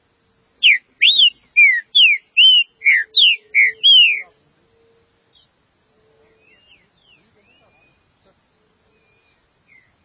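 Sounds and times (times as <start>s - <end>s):
green-winged saltator song of slurred whistles: 0.6s - 5.5s, 6.2s - 8.1s, 8.8s - 10.0s.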